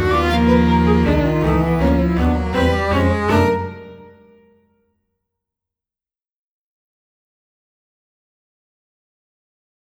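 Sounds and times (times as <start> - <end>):
string quartet: 0.0 - 4.4.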